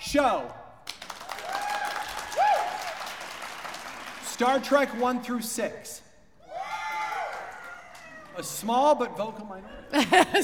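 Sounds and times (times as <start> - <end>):
speech: 0.1 - 0.6, 4.4 - 6.0, 8.4 - 10.4
round of applause: 0.8 - 5.2, 6.9 - 8.5
laughter: 9.6 - 10.4.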